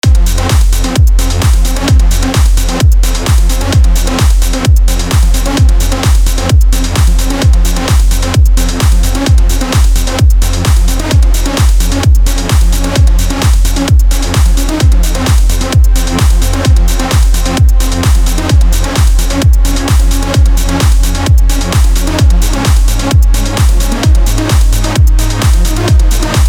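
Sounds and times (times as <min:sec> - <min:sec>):
trance music: 0:00.0 - 0:26.4.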